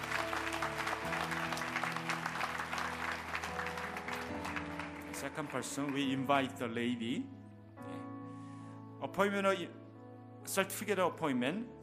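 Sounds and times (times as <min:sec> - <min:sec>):
audience applause: 0:00.0 - 0:06.2
sustained keyboard chords: 0:00.0 - 0:10.8
speech: 0:05.4 - 0:07.4, 0:09.2 - 0:09.8, 0:10.5 - 0:11.8.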